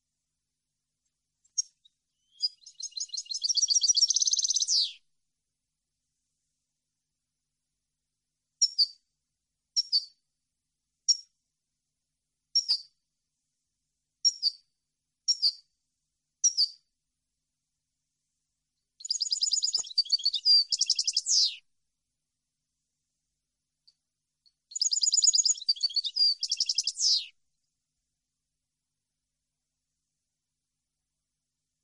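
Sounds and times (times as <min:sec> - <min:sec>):
European goldfinch calling and singing: 0:01.6 - 0:05.0, 0:16.4 - 0:16.8, 0:19.0 - 0:21.6, 0:24.7 - 0:27.3.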